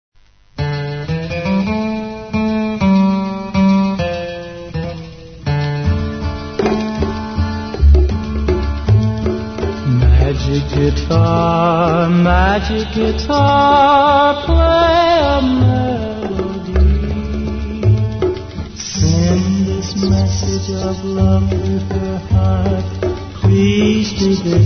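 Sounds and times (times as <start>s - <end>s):
magic guitar: 0.2s - 24.6s.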